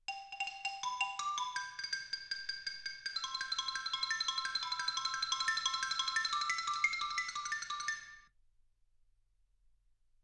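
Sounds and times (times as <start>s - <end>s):
xylophone: 0.1s - 8.3s.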